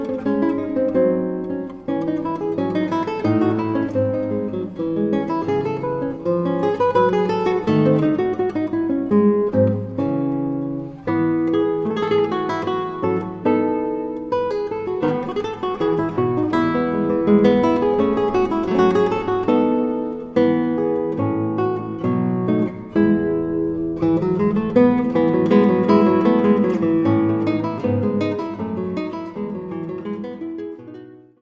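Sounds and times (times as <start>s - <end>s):
guitar playing a gavotte: 0.0s - 31.3s.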